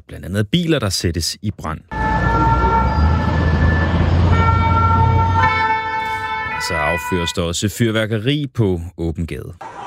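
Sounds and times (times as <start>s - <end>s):
speech: 0.1s - 2.1s, 6.6s - 9.7s
low rumble of traffic: 1.9s - 7.1s
emergency vehicle sirens blaring in the street: 1.9s - 7.6s.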